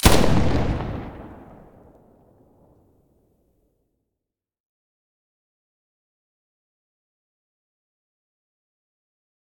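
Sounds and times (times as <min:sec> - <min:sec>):
FN2000 rifle muzzle blast: 0:00.0 - 0:02.1.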